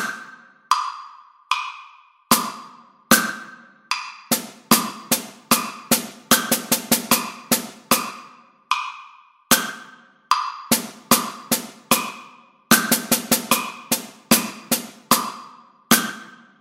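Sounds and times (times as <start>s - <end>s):
drum set: 0.0s - 0.4s, 2.3s - 8.3s, 9.5s - 16.4s.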